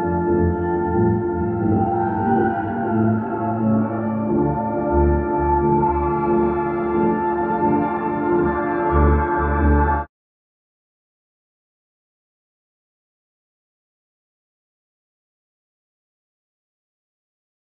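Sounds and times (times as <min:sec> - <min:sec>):
experimental organ music: 0:00.0 - 0:10.1.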